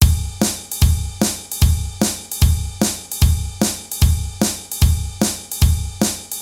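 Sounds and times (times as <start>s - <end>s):
drums: 0.0s - 6.3s.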